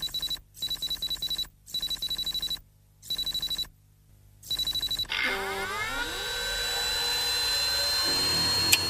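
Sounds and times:
old mainframe computer starting up: 5.2 - 8.8.

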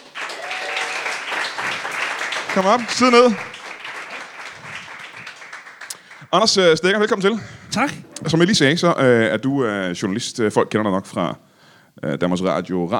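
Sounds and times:
studio audience applause for arriving guest: 0.0 - 6.4
speech: 2.6 - 3.5, 6.3 - 12.9.

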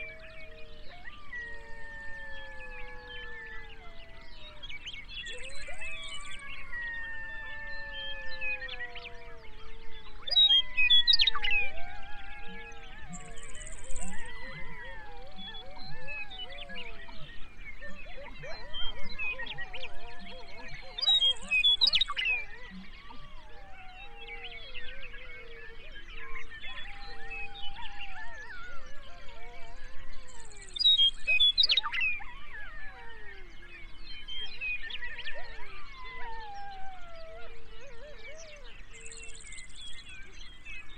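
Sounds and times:
coyotes howling and yipping at dawn in Grasslands National Park, Saskatchewan: 0.0 - 40.9.

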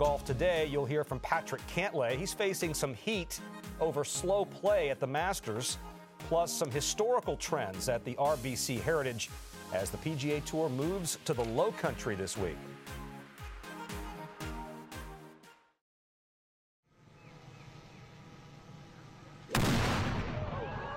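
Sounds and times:
speech: 0.0 - 13.0
ceremonial cannon firing at the 2023 RBC Heritage golf tournament opening ceremony: 19.5 - 20.8.

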